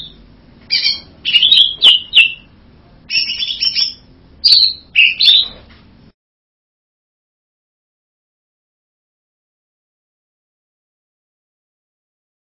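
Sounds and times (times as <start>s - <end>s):
bird buzzy whistled song: 0.0s - 2.5s, 3.1s - 5.6s.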